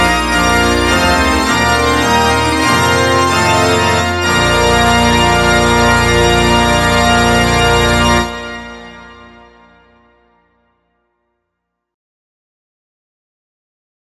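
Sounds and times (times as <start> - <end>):
trumpet piece: 0.0 - 10.0.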